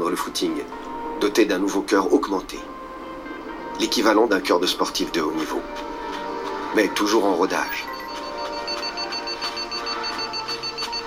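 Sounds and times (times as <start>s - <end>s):
speech: 0.1s - 2.8s, 3.8s - 5.9s, 6.8s - 7.9s
alert beep from a heart monitor: 7.6s - 11.0s.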